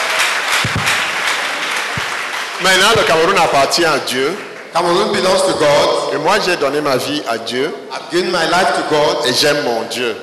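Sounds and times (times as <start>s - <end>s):
audience clapping: 0.0s - 5.4s
speech: 2.6s - 10.2s.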